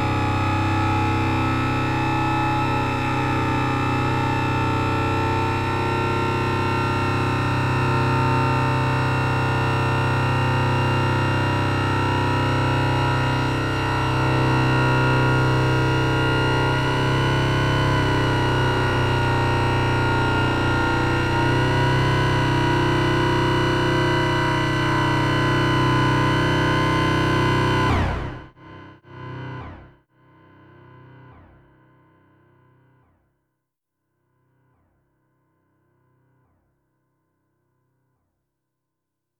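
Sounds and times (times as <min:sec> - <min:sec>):
tense single-note drone: 0:00.0 - 0:29.6.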